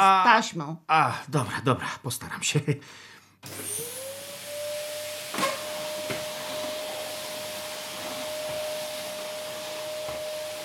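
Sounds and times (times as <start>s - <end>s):
speech: 0.0s - 3.9s
vacuum cleaner running: 3.4s - 10.6s.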